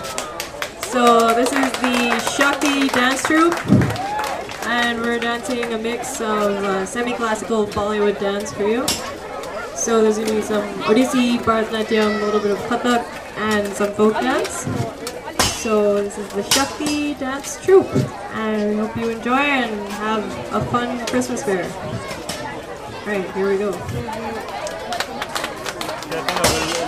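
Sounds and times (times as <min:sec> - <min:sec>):
youth centre fair afternoon ambience: 0:00.0 - 0:26.8.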